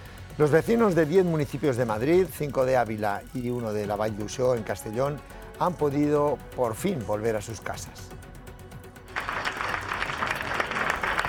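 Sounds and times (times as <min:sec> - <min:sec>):
speech: 0:00.4 - 0:08.2
people applauding: 0:09.1 - 0:11.2.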